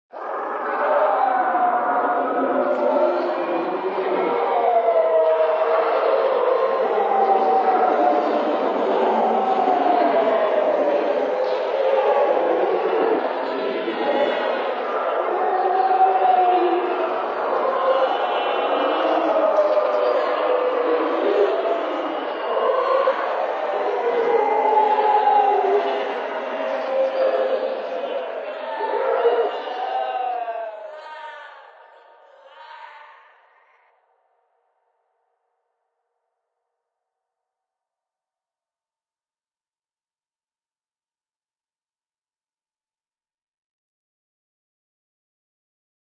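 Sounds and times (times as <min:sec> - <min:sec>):
horrible screams of souls trapped in hell: 0:00.1 - 0:34.0.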